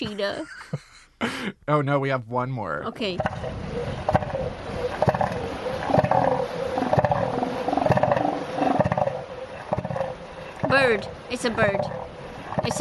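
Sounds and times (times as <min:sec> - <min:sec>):
laughter: 0:00.0 - 0:01.6
speech: 0:00.0 - 0:04.2, 0:10.7 - 0:12.0
elephant seal bellowing: 0:02.9 - 0:12.7.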